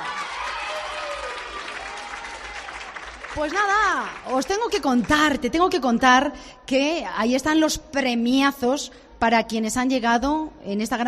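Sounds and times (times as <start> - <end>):
audience clapping: 0.0 - 5.4
speech: 3.4 - 11.0.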